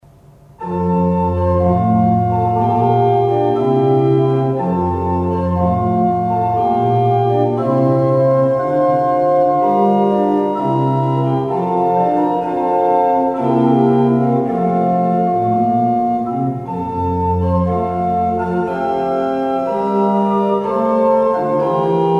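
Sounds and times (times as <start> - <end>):
baroque orchestral air: 0.1 - 22.1.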